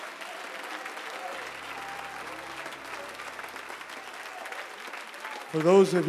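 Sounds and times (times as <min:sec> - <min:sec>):
audience clapping hands: 0:00.0 - 0:06.0.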